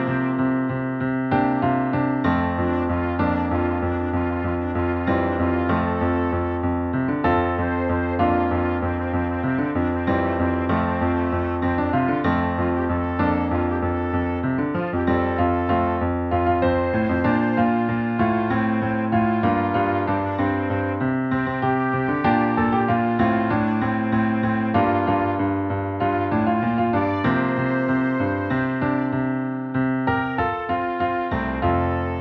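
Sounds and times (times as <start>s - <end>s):
piano soprano melody: 0.0s - 32.1s.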